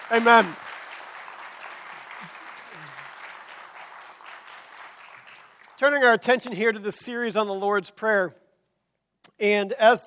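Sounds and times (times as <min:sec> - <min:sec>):
audience clapping hands: 0:00.0 - 0:06.6
speech: 0:00.1 - 0:00.7, 0:05.8 - 0:08.4, 0:09.4 - 0:10.0.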